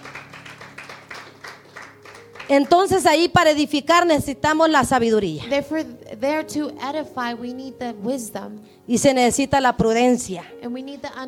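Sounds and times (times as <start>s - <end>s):
audience applause: 0.0s - 2.6s
speech: 2.5s - 11.2s.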